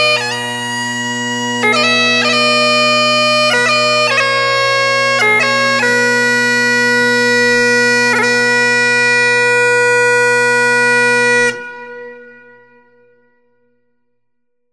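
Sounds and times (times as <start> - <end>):
bagpipes playing: 0.0 - 12.8.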